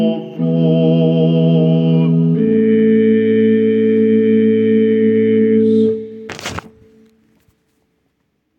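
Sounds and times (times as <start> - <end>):
basses and tenors singing a choral motet: 0.0 - 6.2.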